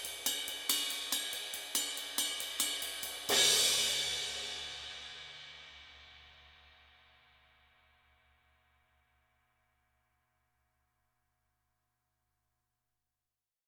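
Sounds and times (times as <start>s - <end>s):
single cymbal hit: 0.1s - 6.6s.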